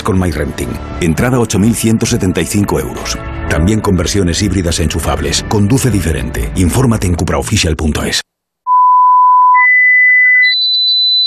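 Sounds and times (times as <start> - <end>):
speech: 0.1 - 8.2
radio time signal electronic beeps: 8.7 - 11.2.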